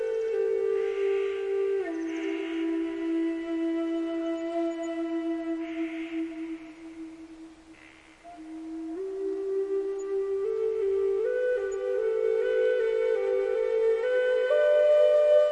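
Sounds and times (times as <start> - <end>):
flute lullaby for sleep and relaxation: 0.0 - 15.4
nature sounds: 0.0 - 15.4.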